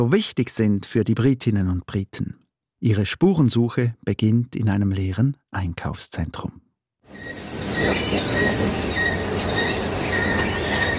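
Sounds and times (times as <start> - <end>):
speech: 0.0 - 8.9
squeaking escalator: 7.1 - 10.9.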